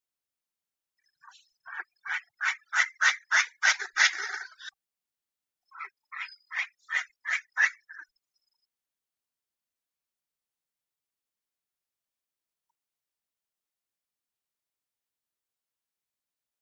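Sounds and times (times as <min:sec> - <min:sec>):
Chinese francolin calling: 0:01.1 - 0:04.8, 0:05.7 - 0:08.2.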